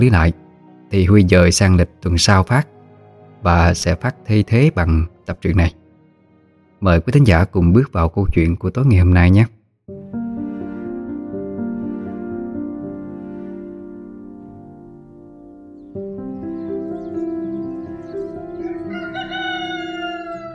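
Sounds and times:
speech: 0.0s - 2.7s, 3.4s - 5.8s, 6.8s - 10.1s
rooster crowing at dawn: 18.5s - 20.5s.

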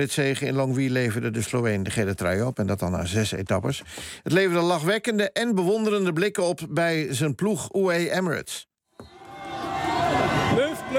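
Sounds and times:
speech: 0.0s - 8.7s
crowd cheering in Longwy as Tadej Pogačar wins the Tour de France stage: 9.0s - 10.9s.

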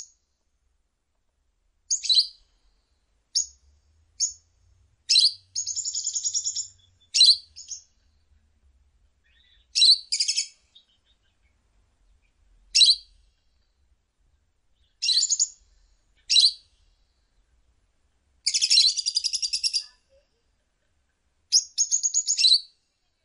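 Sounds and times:
lovebird harsh chirps: 1.9s - 2.4s, 5.1s - 7.9s, 9.2s - 11.3s, 12.7s - 13.2s, 14.8s - 15.6s, 16.2s - 16.8s, 18.4s - 20.0s, 21.5s - 22.8s.

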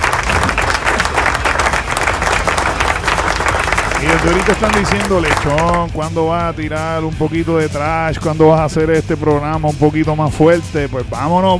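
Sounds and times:
crowd applauding in a studio: 0.0s - 5.9s
speech: 4.0s - 11.5s.

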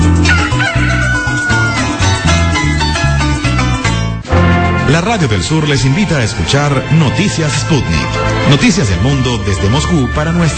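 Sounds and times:
upbeat music with a steady pulsing bass beat: 0.0s - 9.8s
rooster crowing: 0.2s - 2.8s
speech: 5.0s - 10.5s.

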